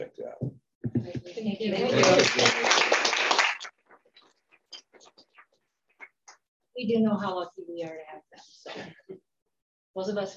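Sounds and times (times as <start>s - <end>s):
speech: 1.3s - 2.8s, 6.8s - 9.2s, 10.0s - 10.3s
audience applause: 1.8s - 3.9s.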